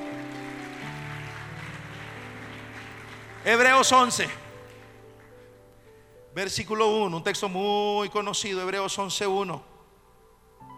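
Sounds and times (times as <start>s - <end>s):
audience clapping hands in praise: 0.0s - 5.9s
speech: 3.4s - 4.4s, 6.4s - 9.7s.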